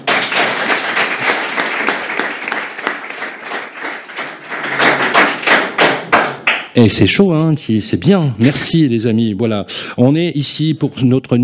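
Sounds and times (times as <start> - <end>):
audience applause: 0.0 - 6.6
speech: 6.8 - 11.4.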